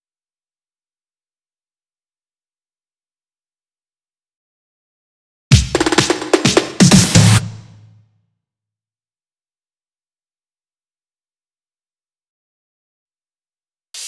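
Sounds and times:
drum fills: 5.5 - 8.0.

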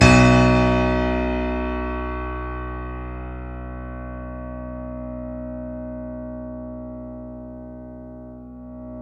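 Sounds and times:
Yamaha YC7 piano played fortissimo: 0.0 - 9.0.

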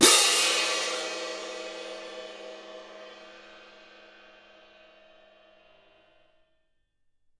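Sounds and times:
cymbal percussion: 0.0 - 6.3.

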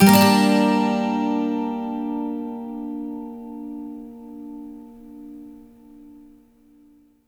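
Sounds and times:
12-string acoustic guitar minor loops: 0.0 - 7.0.

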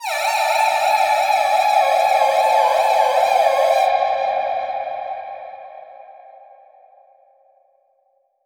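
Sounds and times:
echo-processed alarm siren samples: 0.0 - 4.2.

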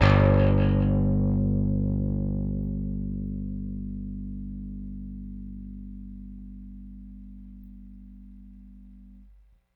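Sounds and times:
Rickenbacker bass guitar: 0.0 - 9.4.

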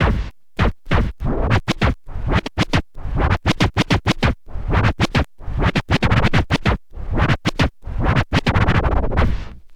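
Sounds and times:
vinyl scratches mix: 0.0 - 9.6.

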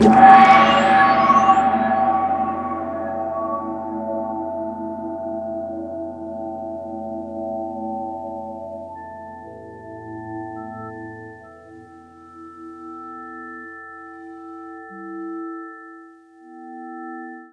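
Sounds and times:
metal gong: 0.0 - 5.2.

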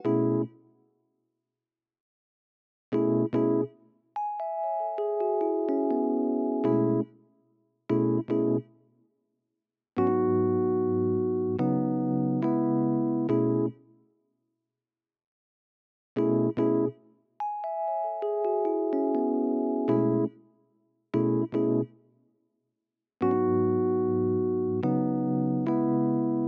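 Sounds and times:
Rhodes electric piano smooth RnB in F sharp minor: 0.0 - 0.5, 3.0 - 3.7, 4.4 - 7.1, 7.9 - 8.6, 10.0 - 13.8, 16.2 - 16.9, 17.6 - 20.3, 21.2 - 21.9, 23.2 - 26.4.

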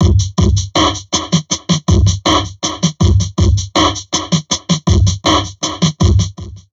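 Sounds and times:
heavily processed drum loop: 0.0 - 6.7.

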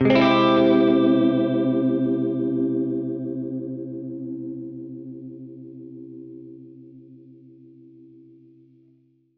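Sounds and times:
Gretsch guitar C minor major seventh chord: 0.0 - 5.2.

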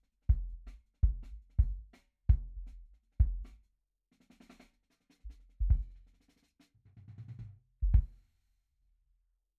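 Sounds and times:
drum and bass sub kick drum: 0.3 - 3.5, 5.6 - 5.9, 7.8 - 8.1.

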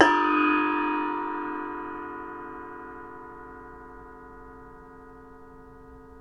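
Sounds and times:
Nepalese Asian cymbals: 0.0 - 2.0.

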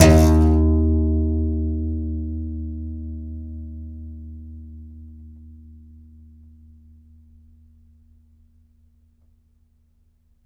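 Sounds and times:
contrabass balalaika plucked strings: 0.0 - 5.6.

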